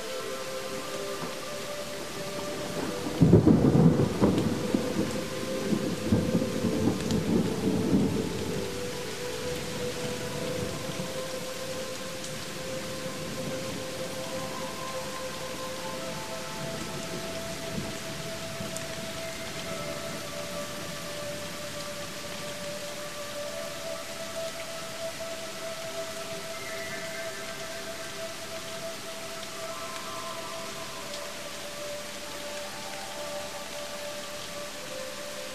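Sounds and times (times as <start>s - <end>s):
rain: 0.0s - 35.5s
relaxation music: 0.0s - 35.5s
thunder: 2.7s - 8.6s.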